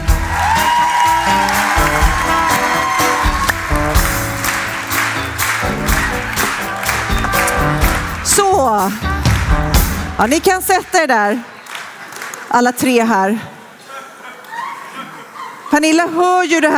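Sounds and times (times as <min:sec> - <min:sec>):
audience applause: 0:00.0 - 0:08.3, 0:11.4 - 0:12.5
thumping band playing: 0:00.0 - 0:11.0
speech: 0:10.2 - 0:11.5, 0:12.5 - 0:13.5, 0:15.8 - 0:16.7
laughter: 0:13.7 - 0:16.2.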